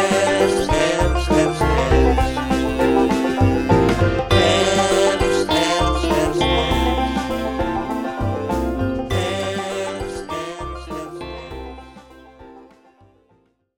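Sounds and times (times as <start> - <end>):
melody: 0.0 - 12.8.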